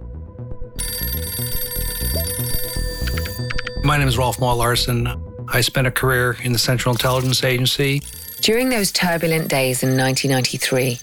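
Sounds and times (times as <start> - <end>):
steady rhythmic low-pitched musical backing: 0.0 - 11.0
telephone ringing: 0.8 - 5.1, 6.6 - 11.0
speech: 3.9 - 11.0.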